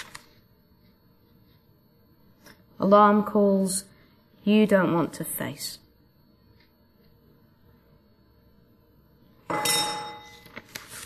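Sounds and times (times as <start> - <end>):
speech: 2.8 - 5.8
metallic chime ringing: 9.5 - 10.5.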